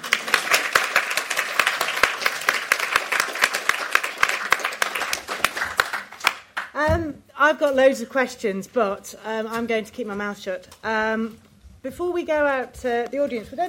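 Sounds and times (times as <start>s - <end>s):
audience applause: 0.0s - 6.7s
speech: 6.8s - 13.6s.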